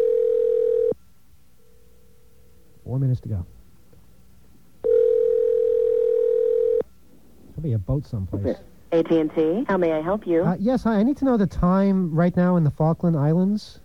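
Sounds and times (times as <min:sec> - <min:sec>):
telephone dial tone: 0:00.0 - 0:01.0, 0:04.8 - 0:06.8
speech: 0:02.9 - 0:03.6, 0:07.6 - 0:13.8.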